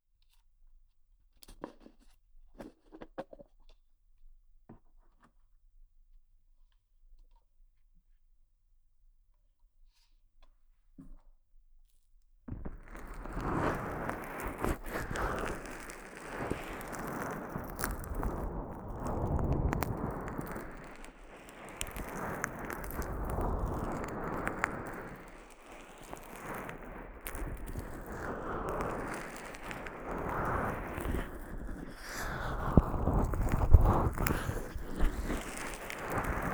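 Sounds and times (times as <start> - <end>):
ear kneading massage sounds without voice: 13.0 - 36.5.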